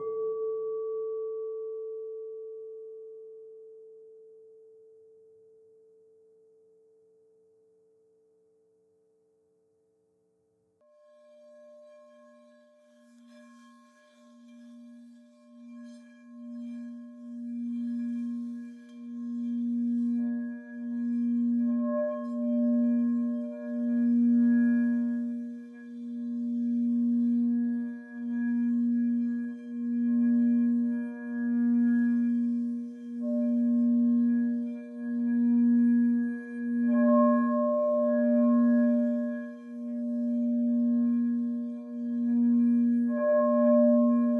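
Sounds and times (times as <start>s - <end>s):
lower crystal singing bowl sung steadily: 0.0s - 7.3s, 10.8s - 44.3s
struck crystal singing bowl ringing: 11.1s - 44.3s.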